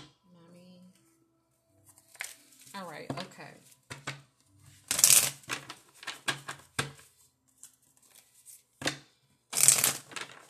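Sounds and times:
jumbo oracle cards being shuffled: 1.9s - 2.7s, 4.7s - 8.7s, 9.5s - 10.4s.

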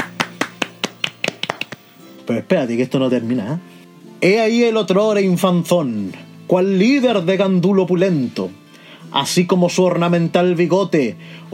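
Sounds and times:
hand claps from one or two people: 0.0s - 2.2s
speech: 2.3s - 11.5s.

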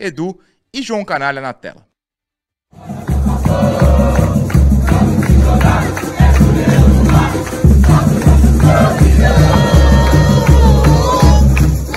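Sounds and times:
speech: 0.0s - 1.9s, 2.7s - 4.1s
football fans celebrating in stadium: 2.7s - 11.9s.

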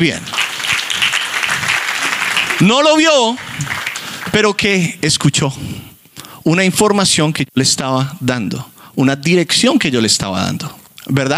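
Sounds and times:
speech: 0.0s - 0.3s, 2.6s - 3.7s, 4.4s - 11.3s
audience applause: 0.1s - 4.6s.

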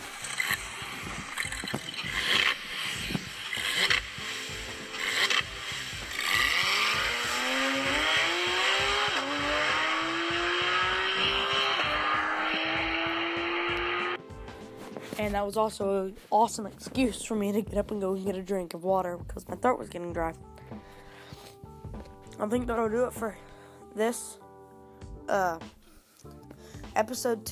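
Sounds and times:
car engine starting up and revving: 0.0s - 14.2s
speech: 15.3s - 20.5s, 22.4s - 24.4s, 25.3s - 25.8s, 27.0s - 27.5s.

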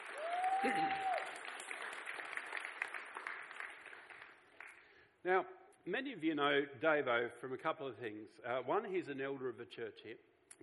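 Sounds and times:
church audience applause welcoming an elder: 0.0s - 4.8s
speech: 0.6s - 1.1s, 5.2s - 10.6s.

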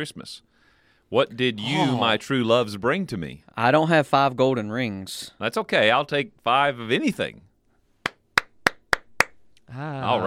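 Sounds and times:
speech: 0.0s - 0.5s, 1.1s - 7.5s, 9.7s - 10.2s
hand claps: 8.0s - 9.4s.

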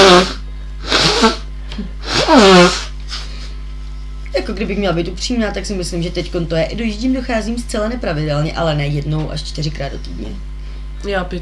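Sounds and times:
person blowing nose: 0.0s - 3.6s
speech: 4.5s - 11.3s.

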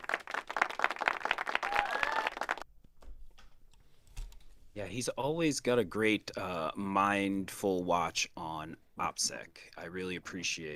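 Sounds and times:
several people clapping: 0.0s - 2.7s
speech: 4.8s - 10.7s.

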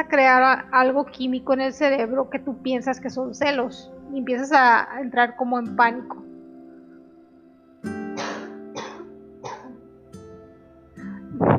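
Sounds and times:
speech: 0.0s - 6.3s
person coughing hoarsely after choking while talking: 8.2s - 9.8s.

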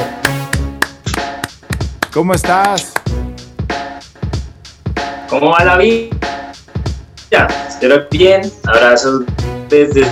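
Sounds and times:
applause: 0.2s - 3.1s
speech: 2.1s - 2.9s, 5.3s - 6.2s, 7.3s - 10.1s.

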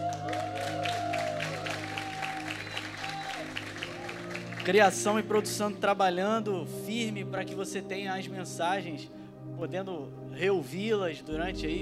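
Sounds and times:
audience applause: 0.0s - 5.3s
speech: 4.7s - 11.8s.

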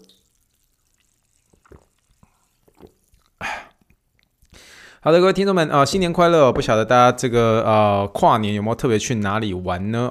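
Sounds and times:
sparkling water poured for a toast: 0.0s - 4.4s
speech: 5.0s - 10.0s.

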